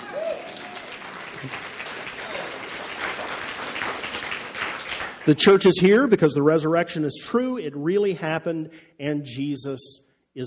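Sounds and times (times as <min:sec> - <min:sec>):
audience clapping: 0:00.0 - 0:05.9
speech: 0:01.4 - 0:01.7, 0:05.2 - 0:10.4.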